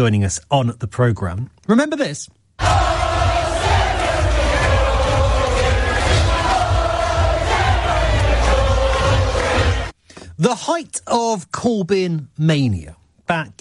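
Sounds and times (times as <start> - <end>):
speech: 0.0 - 2.9, 10.4 - 13.5
huge festival crowd chanting at Glastonbury Music Festival: 2.6 - 10.0.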